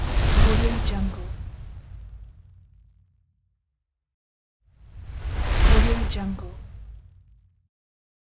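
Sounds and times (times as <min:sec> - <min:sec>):
transition and movement whoosh: 0:00.0 - 0:02.6, 0:04.8 - 0:07.1.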